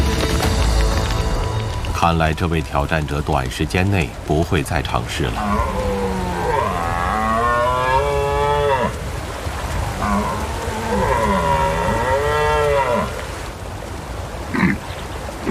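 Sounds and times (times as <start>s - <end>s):
rustle: 0.0s - 15.4s
speech: 2.0s - 5.9s
red deer stag roaring: 5.3s - 9.0s, 10.0s - 13.2s.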